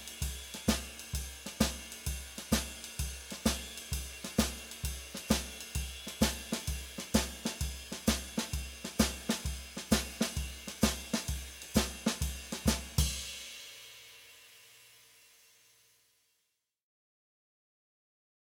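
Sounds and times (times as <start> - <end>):
bop drumming shuffle: 0.0 - 13.5.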